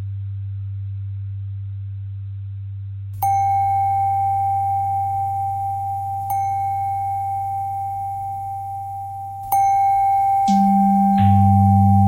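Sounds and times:
pentatonic bell melody: 3.2s - 12.0s.

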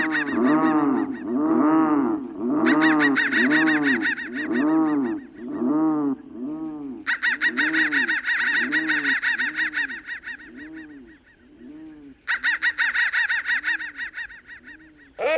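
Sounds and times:
crows giving rapid harsh caws: 0.0s - 15.2s.

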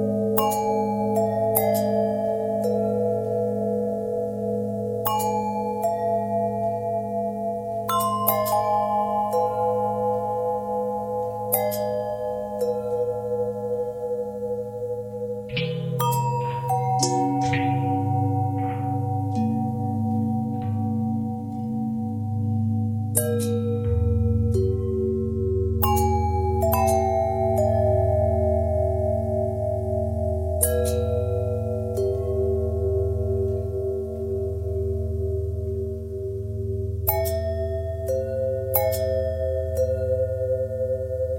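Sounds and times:
long bell with twisting pitch bend: 0.0s - 41.3s.

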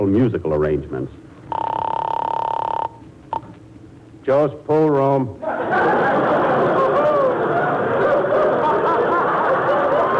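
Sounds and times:
speech: 0.0s - 1.8s, 4.2s - 6.4s
telephone ringing tone heard over the line: 1.5s - 3.5s
laughter: 5.4s - 10.1s.

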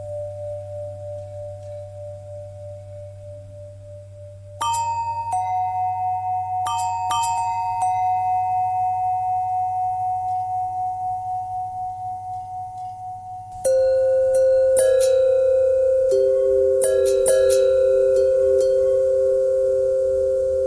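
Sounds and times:
long bell threads: 4.6s - 20.5s.

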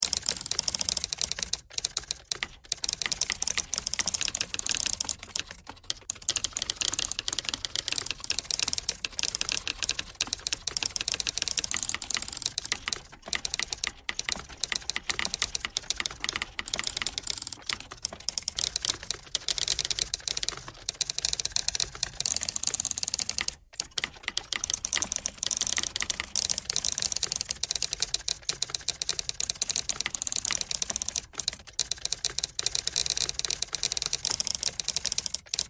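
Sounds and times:
pentatonic typewriter tones: 0.0s - 35.6s.

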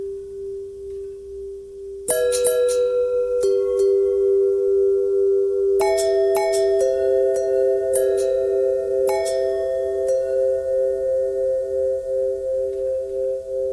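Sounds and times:
long bell tones: 2.1s - 13.7s.

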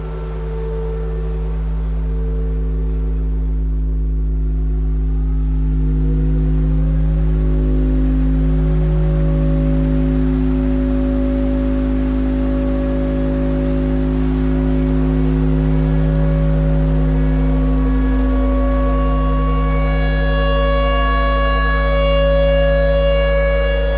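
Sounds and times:
tornado siren: 0.0s - 23.9s
clarinet playing pentatonic: 15.9s - 23.9s.

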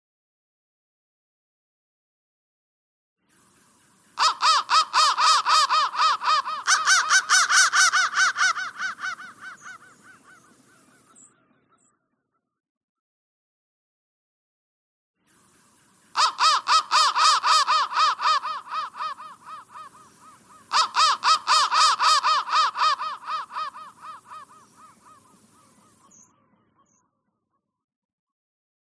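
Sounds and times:
crow calling harshly: 4.2s - 11.3s, 16.1s - 26.9s.

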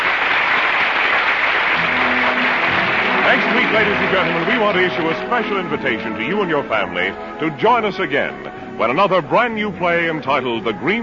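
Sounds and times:
theater audience applause at the Little Theater on Times Square: 0.0s - 5.9s
speech: 3.8s - 11.0s.

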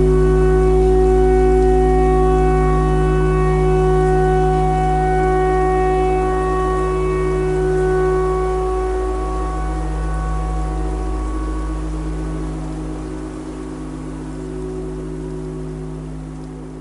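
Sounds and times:
clarinet: 0.0s - 13.0s
tornado siren: 0.0s - 16.7s.

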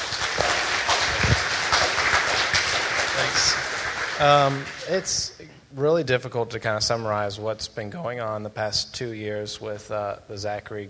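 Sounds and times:
audience applause: 0.0s - 5.2s
speech: 4.2s - 10.8s.

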